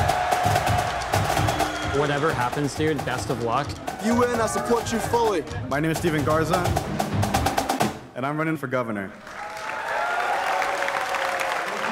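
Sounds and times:
audience applause: 0.0 - 5.0, 9.2 - 11.9
speech: 2.0 - 7.0, 8.2 - 9.3.

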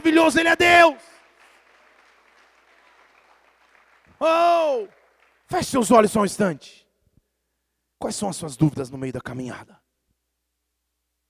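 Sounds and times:
audience applause: 0.0 - 6.0
speech: 0.1 - 1.1, 4.2 - 6.8, 8.0 - 9.8.

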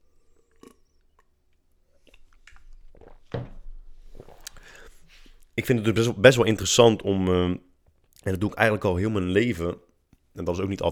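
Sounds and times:
person sipping water: 0.0 - 5.6
quiet breaths: 0.0 - 5.7
faint shuffling: 2.1 - 7.2
speech: 5.6 - 10.9.

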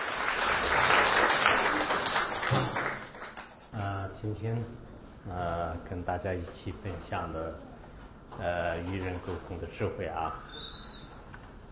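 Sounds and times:
warm audience applause: 0.0 - 3.5
speech: 4.2 - 7.7, 8.3 - 10.5.

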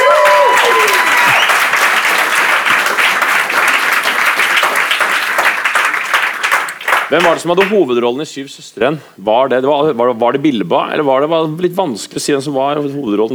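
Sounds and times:
sliding whoop: 0.0 - 1.6
audience applause: 0.0 - 7.8
speech: 7.1 - 13.3.

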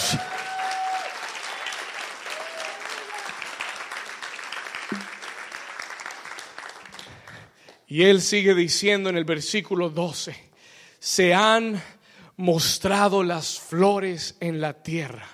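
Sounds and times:
whistles and cheers: 0.0 - 4.0
audience applauding loudly: 0.0 - 7.6
speech: 7.9 - 15.3.

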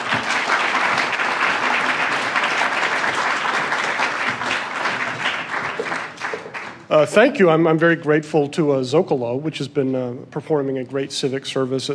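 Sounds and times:
audience applause welcoming speaker: 0.0 - 6.9
speech: 6.9 - 11.9.

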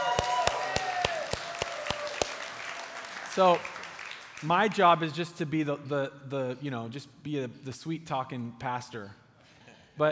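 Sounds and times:
audience applause: 0.0 - 4.5
speech: 3.4 - 3.8, 4.4 - 9.2.

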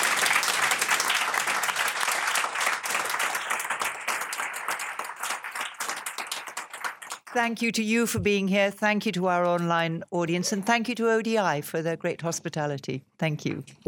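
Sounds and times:
audience applause for speakers at the close of a panel discussion: 0.0 - 7.7
speech: 7.3 - 13.8.

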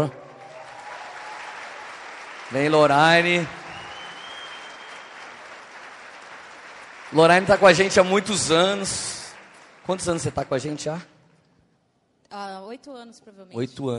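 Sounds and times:
speech: 0.0 - 0.2, 2.5 - 3.6, 7.1 - 9.2, 9.8 - 11.1, 12.3 - 13.9
audience applause: 0.0 - 11.0.

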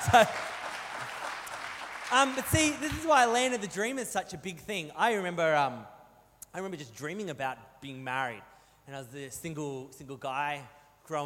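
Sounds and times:
one person applauding: 0.0 - 3.4
speech: 0.1 - 0.5, 2.1 - 11.2.

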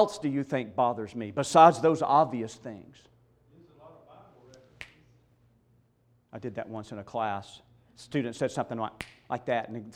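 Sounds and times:
speech: 0.0 - 3.1, 6.3 - 9.9
finger snap: 4.5 - 5.1, 9.0 - 9.3.

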